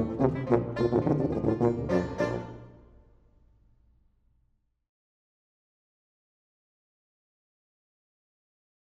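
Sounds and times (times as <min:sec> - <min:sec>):
tubas dueling: 0:00.0 - 0:02.8.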